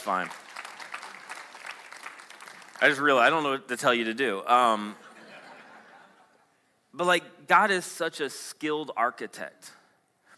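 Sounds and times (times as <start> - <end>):
speech: 0.0 - 0.5, 2.8 - 5.0, 6.9 - 9.8
audience golf clapping: 0.0 - 3.4
laughter: 4.9 - 6.5.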